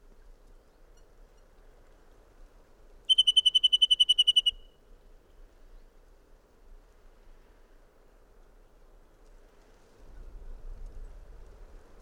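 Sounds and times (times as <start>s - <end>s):
bird trilling: 3.1s - 4.7s.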